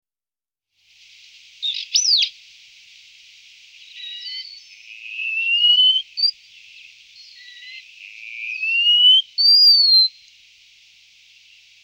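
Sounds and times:
Wallcreeper Tichodroma muraria chirps and whistles: 0:01.0 - 0:11.7.

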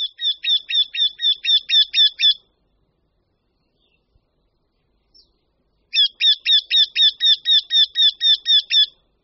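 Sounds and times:
Eurasian wryneck calling: 0:00.0 - 0:02.4, 0:05.9 - 0:09.0.

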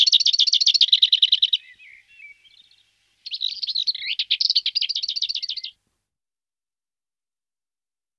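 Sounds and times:
lesser whitethroat Sylvia curruca singing: 0:00.0 - 0:05.8.

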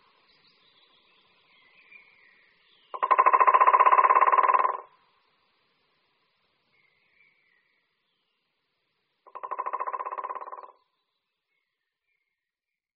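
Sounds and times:
White-backed woodpecker drumming: 0:02.9 - 0:04.9, 0:09.2 - 0:10.8.

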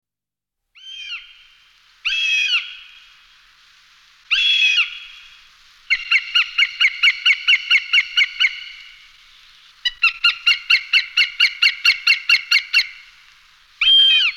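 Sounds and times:
northern goshawk Accipiter gentilis giving harsh wailing and squealing calls: 0:00.8 - 0:03.1, 0:05.9 - 0:09.0, 0:09.8 - 0:13.1, 0:13.8 - 0:14.3.

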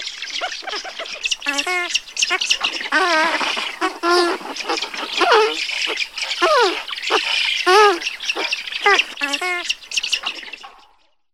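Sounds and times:
Eurasian spoonbill calling: 0:00.2 - 0:10.8
birds squawking and chattering: 0:00.2 - 0:10.8
speech: 0:01.5 - 0:03.6.

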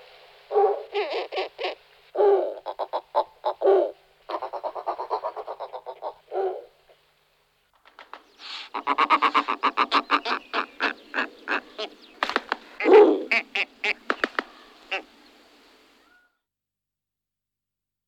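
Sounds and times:
snowy owl Nyctea scandiaca calling: 0:00.5 - 0:06.8, 0:08.2 - 0:16.4.

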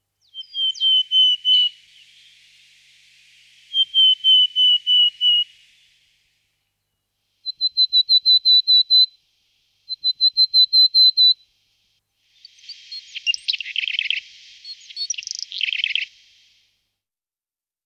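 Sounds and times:
willow tit calling: 0:00.2 - 0:02.2, 0:03.7 - 0:05.6, 0:07.4 - 0:09.1, 0:09.9 - 0:11.4, 0:12.4 - 0:16.3.

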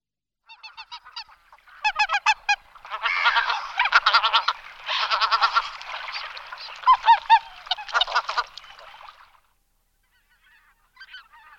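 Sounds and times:
greater white-fronted goose flock honking: 0:00.5 - 0:09.3.

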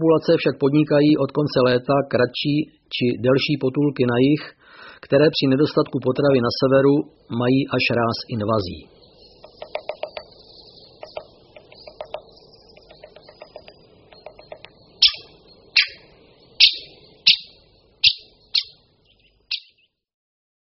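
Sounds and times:
speech: 0:00.0 - 0:08.9
great spotted woodpecker calls: 0:06.9 - 0:19.9.

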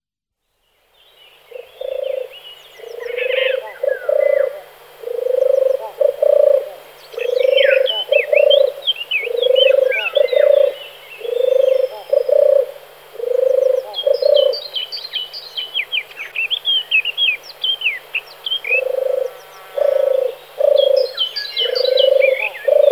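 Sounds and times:
small songbirds chirping: 0:00.8 - 0:22.9
European turtle dove purring: 0:01.5 - 0:14.6, 0:18.7 - 0:22.9.

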